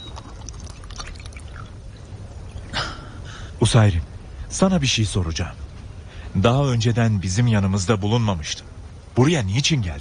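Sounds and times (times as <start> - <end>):
water pouring for a drink: 0.0 - 2.8
speech: 3.7 - 5.6, 6.3 - 9.9.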